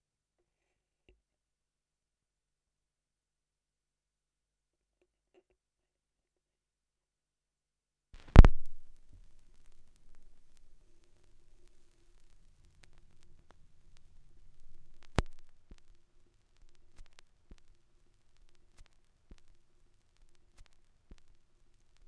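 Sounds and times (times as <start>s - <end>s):
vinyl record noise: 8.2s - 22.0s.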